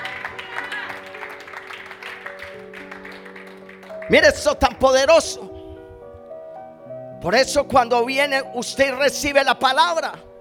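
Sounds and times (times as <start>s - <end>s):
crowd applause: 0.0s - 4.5s
sustained keyboard chords: 0.0s - 10.3s
speech: 4.1s - 5.5s, 7.2s - 10.3s.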